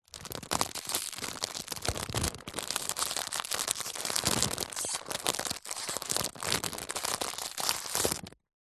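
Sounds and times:
small stiff plastic packet handling: 0:00.1 - 0:08.4.

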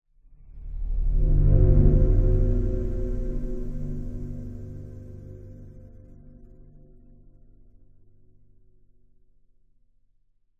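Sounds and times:
dark eerie cinematic sound design swell: 0:00.3 - 0:07.8.

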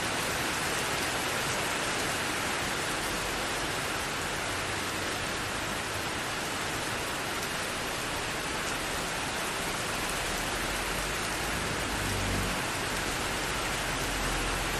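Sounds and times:
medium heavy rain on street and roof in an industrial estate: 0:00.0 - 0:14.7
light traffic passing in an industrial estate: 0:09.6 - 0:14.7.

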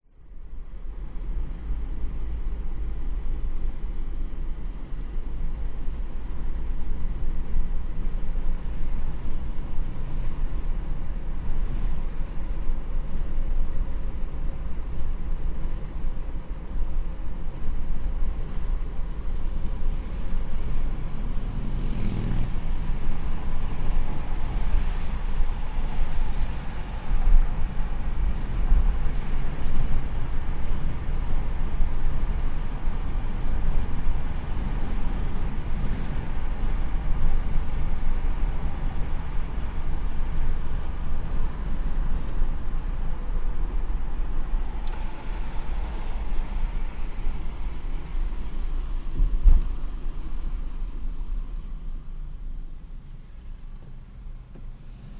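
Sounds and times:
car driving at 100 kph heard inside with windows open: 0:00.2 - 0:55.1.

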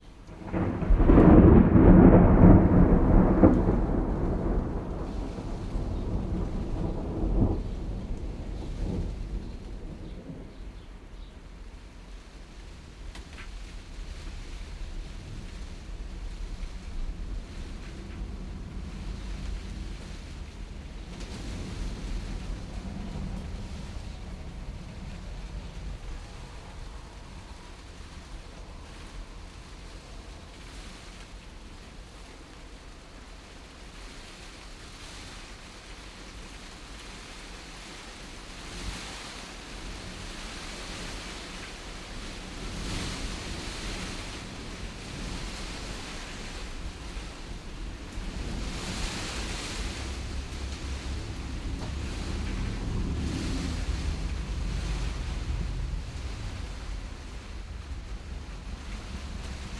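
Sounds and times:
light rain on a greenhouse: 0:00.0 - 0:59.7
thunder crack heard inside a greenhouse: 0:00.3 - 0:10.8, 0:14.6 - 0:28.3, 0:43.4 - 0:59.7.

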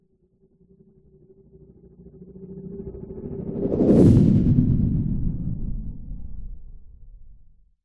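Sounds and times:
science fiction spacecraft flying by fast: 0:03.1 - 0:06.1.

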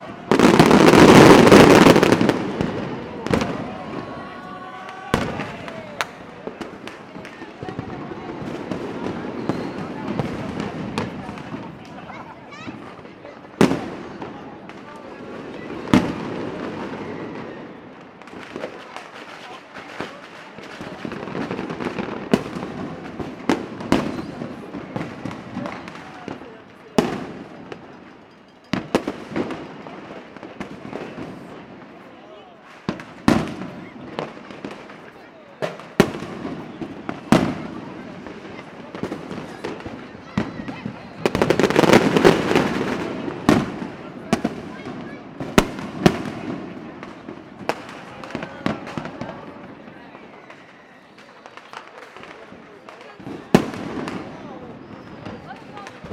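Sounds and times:
urban fireworks mixture: 0:00.0 - 0:56.1.

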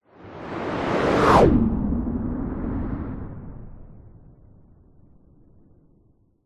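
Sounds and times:
fast close cinematic whoosh with doppler: 0:00.4 - 0:04.4.

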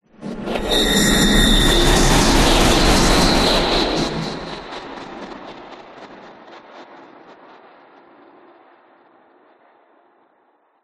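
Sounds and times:
whoosh: 0:00.2 - 0:05.3.

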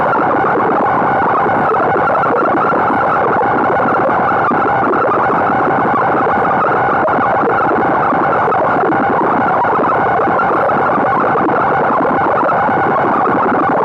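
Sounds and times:
science fiction scrambled message unscrambled tone loop: 0:00.0 - 0:13.8.

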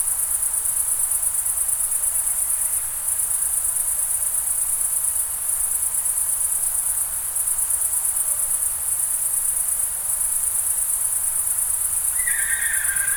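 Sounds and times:
crickets chirping on a summer night in the Pyrenees mountains, France: 0:04.9 - 0:13.1.

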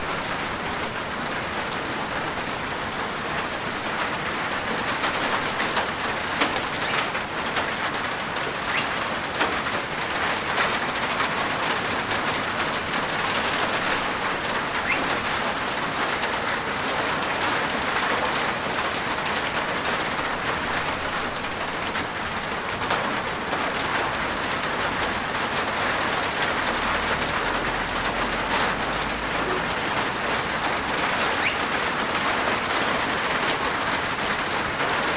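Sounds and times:
medium heavy rain with large drops on a plastic veranda roof: 0:00.0 - 0:35.1
birds: 0:06.4 - 0:07.2, 0:08.6 - 0:09.0, 0:14.7 - 0:15.4, 0:31.0 - 0:31.8.

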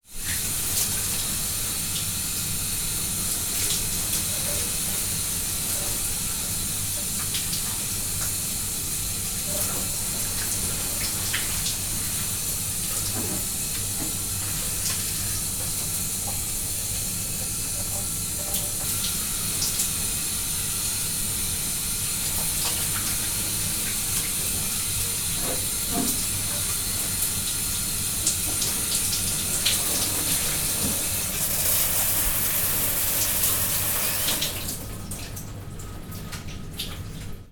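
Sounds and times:
household shower running in a big bathroom in a farm house: 0:00.0 - 0:37.5.

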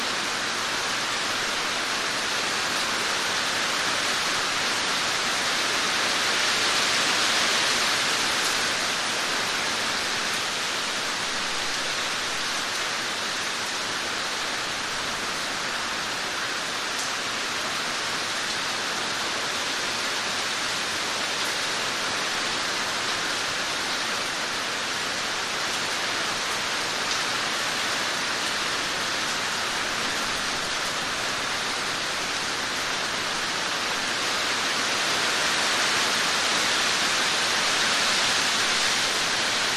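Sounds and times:
heavy rain storm on a roof outdoors: 0:00.0 - 0:39.7.

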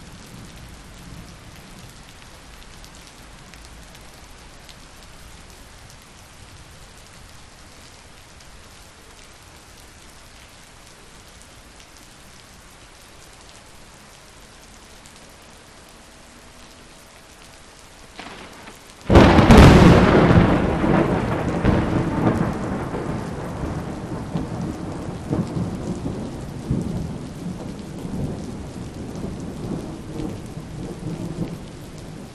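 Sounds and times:
medium rain on street in Kuala Lumpur Malaysia: 0:00.0 - 0:32.3
big distant thunders: 0:18.2 - 0:32.3.

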